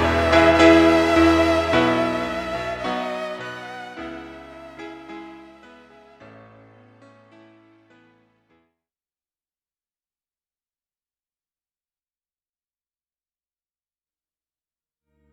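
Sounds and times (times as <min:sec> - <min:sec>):
violin: 0:00.0 - 0:06.6
keyboard: 0:00.0 - 0:08.5.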